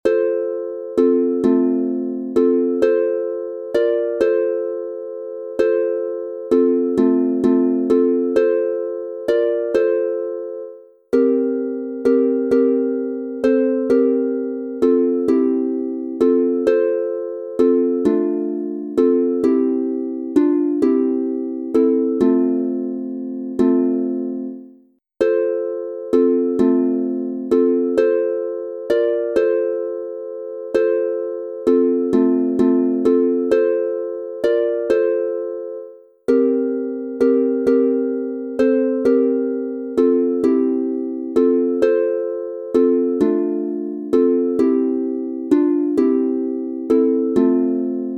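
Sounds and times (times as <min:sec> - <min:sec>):
three-voice harp instrumental in F major: 0:00.0 - 0:48.1.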